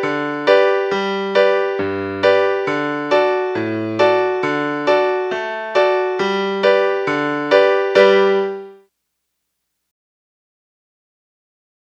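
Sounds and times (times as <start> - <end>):
musical accompaniment: 0.0 - 8.8.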